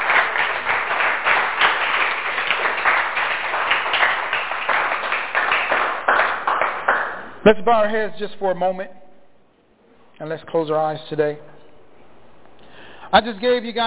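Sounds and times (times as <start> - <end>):
crowd clapping hands in praise: 0.0 - 7.4
speech: 7.4 - 9.0, 10.2 - 11.5, 13.1 - 13.8.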